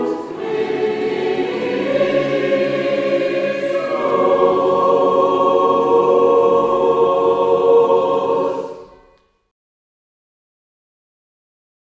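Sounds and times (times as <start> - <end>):
double choir singing: 0.0 - 9.2.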